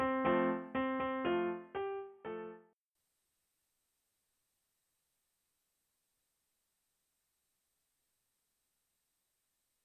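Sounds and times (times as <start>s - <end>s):
piano: 0.0s - 2.8s.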